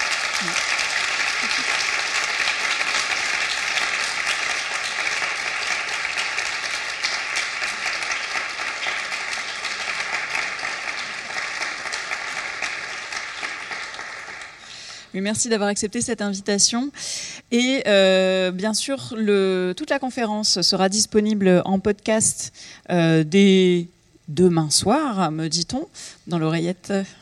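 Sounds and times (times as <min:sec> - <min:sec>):
audience applause: 0:00.0 - 0:15.0
speech: 0:00.4 - 0:00.7, 0:15.2 - 0:27.1.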